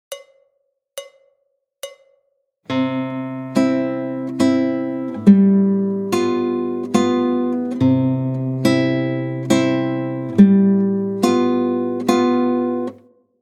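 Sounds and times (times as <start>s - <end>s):
guitar playing waltz rhythm with C and G7 chord changes: 2.7s - 13.0s.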